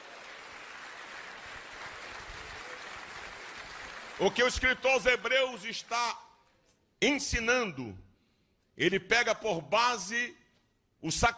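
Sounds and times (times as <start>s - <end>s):
crowd clapping: 0.0s - 6.3s
speech: 4.2s - 6.2s, 7.0s - 8.0s, 8.8s - 10.4s, 11.0s - 11.3s.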